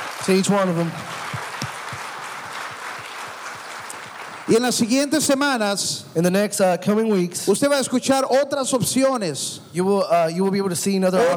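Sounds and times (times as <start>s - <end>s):
crowd applause: 0.0s - 5.4s
speech: 0.2s - 1.2s, 4.5s - 11.3s.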